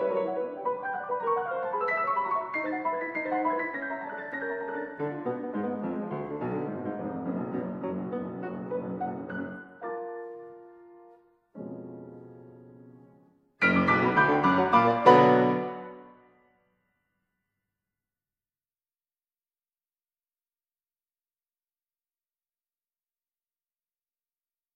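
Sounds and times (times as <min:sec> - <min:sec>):
piano pieces: 0:00.0 - 0:16.4.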